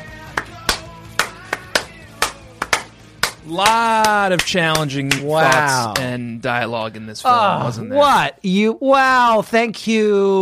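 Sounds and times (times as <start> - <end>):
slow hand clapping: 0.0 - 6.1
speech: 3.5 - 10.3.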